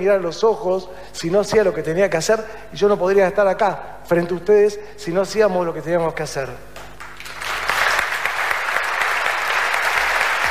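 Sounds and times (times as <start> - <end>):
speech: 0.0 - 6.7
audience applause: 7.0 - 10.4.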